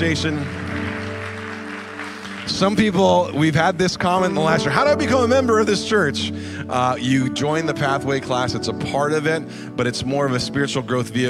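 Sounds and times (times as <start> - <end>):
speech: 0.0 - 0.6, 2.5 - 11.2
crowd applause: 0.0 - 5.0.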